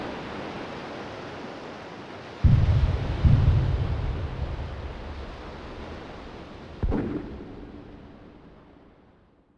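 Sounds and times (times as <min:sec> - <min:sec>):
war ambience: 0:02.4 - 0:09.0.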